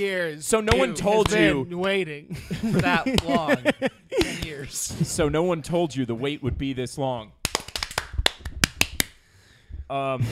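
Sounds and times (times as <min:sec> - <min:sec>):
speech: 0:00.0 - 0:07.4, 0:09.9 - 0:10.2
several people clapping out of sync: 0:00.7 - 0:01.6, 0:02.9 - 0:03.6, 0:04.2 - 0:04.6, 0:07.4 - 0:09.2
laughter: 0:02.3 - 0:05.3.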